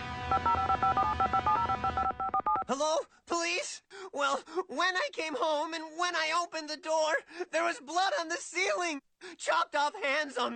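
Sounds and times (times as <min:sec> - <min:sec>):
speech: 0:00.3 - 0:01.4, 0:02.7 - 0:10.5
telephone keypad dialing tones: 0:00.4 - 0:02.7.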